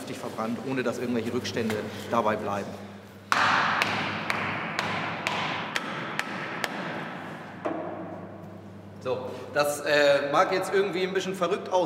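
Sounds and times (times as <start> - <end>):
speech: 0.1 - 2.9, 9.0 - 11.8
hammer driving wedges into explosive block: 3.3 - 8.0.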